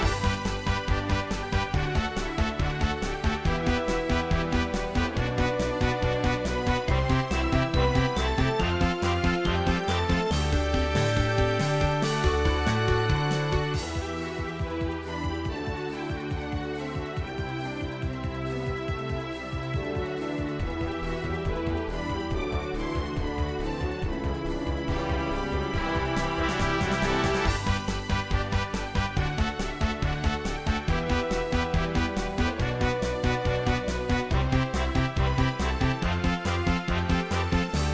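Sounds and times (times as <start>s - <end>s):
upbeat sequenced remix music: 0.0s - 37.9s.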